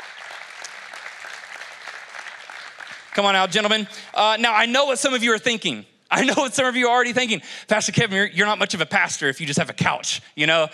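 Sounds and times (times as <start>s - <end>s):
audience applause: 0.0s - 4.0s
speech: 3.2s - 10.7s.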